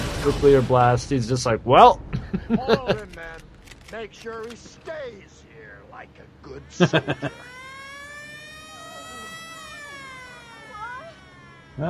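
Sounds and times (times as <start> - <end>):
speech: 0.2 - 5.4, 6.0 - 7.5
laughter: 2.1 - 3.2, 6.6 - 7.5
air raid siren wailing: 7.1 - 11.8.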